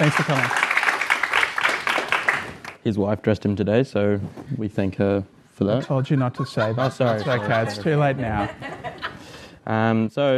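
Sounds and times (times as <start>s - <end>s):
speech: 0.0s - 0.7s, 2.8s - 8.8s, 9.6s - 10.3s
audience applauding: 0.0s - 2.8s
laughter: 5.7s - 9.3s.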